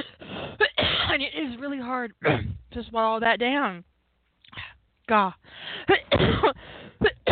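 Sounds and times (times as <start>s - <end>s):
harsh raspy coughs: 0.0s - 1.2s, 2.2s - 2.7s, 5.9s - 7.3s
speech: 1.2s - 3.9s, 5.1s - 6.8s.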